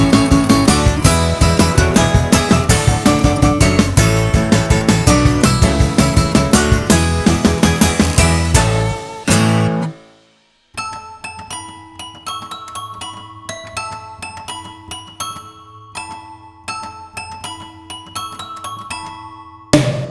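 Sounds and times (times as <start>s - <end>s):
instrumental dance music: 0.0s - 10.0s, 19.8s - 20.0s.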